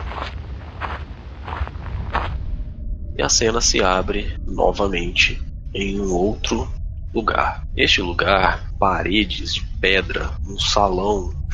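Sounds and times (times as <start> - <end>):
footsteps of a man walking faster toward a mountain: 0.0 - 2.6
steady low rumble: 0.0 - 11.5
speech: 3.2 - 11.5.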